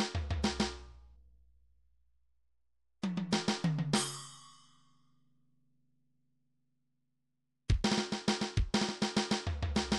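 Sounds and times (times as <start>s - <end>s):
midi drums: 0.0s - 0.8s, 3.0s - 4.2s, 7.7s - 9.9s.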